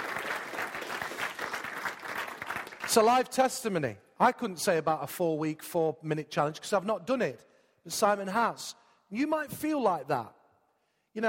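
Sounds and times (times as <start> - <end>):
audience applause: 0.0 - 3.0
speech: 2.9 - 10.4.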